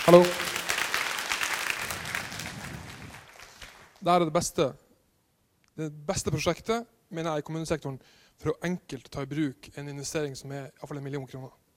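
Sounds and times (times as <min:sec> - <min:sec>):
speech: 0:00.0 - 0:00.5, 0:04.0 - 0:04.8, 0:05.8 - 0:11.6
audience clapping: 0:00.0 - 0:04.1.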